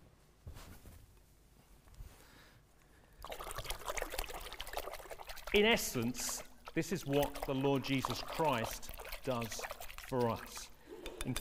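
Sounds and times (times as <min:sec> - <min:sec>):
water poured to wash paint brushes: 0:03.2 - 0:10.8
speech: 0:05.5 - 0:11.3.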